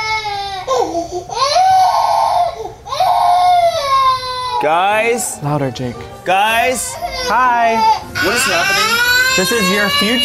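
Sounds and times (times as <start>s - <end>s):
baby screaming and crying: 0.0s - 4.8s, 6.8s - 10.2s
speech: 4.6s - 10.2s.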